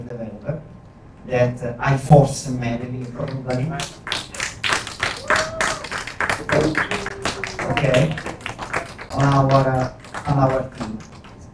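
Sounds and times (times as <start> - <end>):
speech: 1.3 - 4.2, 6.6 - 7.0, 7.8 - 8.3, 9.2 - 11.1
audience applause: 3.0 - 11.5.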